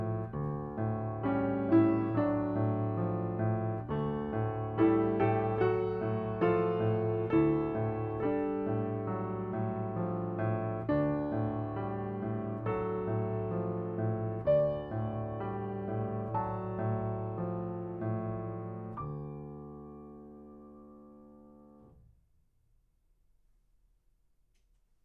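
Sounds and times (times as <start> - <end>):
piano piece: 0.0 - 22.1.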